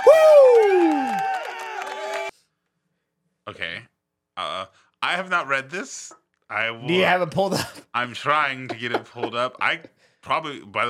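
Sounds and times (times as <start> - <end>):
crowd cheering: 0.0 - 2.4
speech: 5.1 - 10.8.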